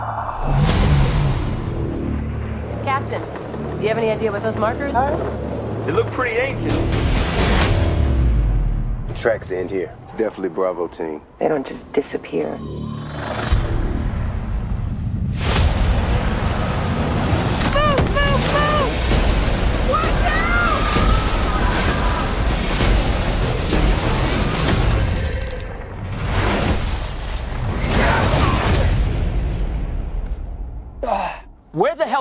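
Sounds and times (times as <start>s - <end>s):
lightning strike: 0.0s - 4.9s, 5.9s - 9.3s, 13.5s - 30.9s
speech: 3.1s - 7.2s, 9.2s - 13.6s.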